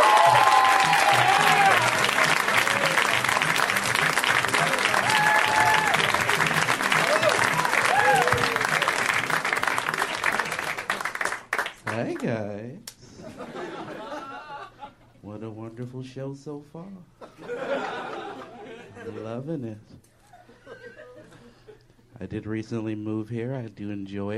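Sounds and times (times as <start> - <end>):
stand-up comedy show audience applause: 0.0 - 12.2
laughter: 13.0 - 15.2, 17.2 - 19.4, 20.2 - 21.8
speech: 15.8 - 17.6, 19.2 - 20.1, 22.2 - 24.3.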